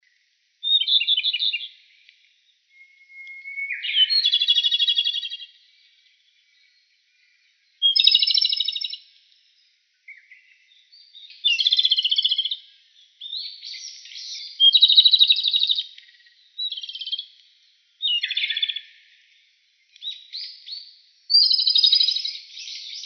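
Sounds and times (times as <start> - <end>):
Japanese robin song: 0.6 - 2.0, 2.6 - 17.4, 18.0 - 19.3, 19.9 - 23.0.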